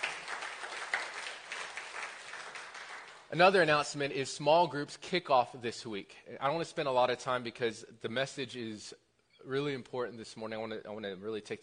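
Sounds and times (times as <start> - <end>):
audience applause: 0.0 - 3.3
speech: 3.3 - 11.6.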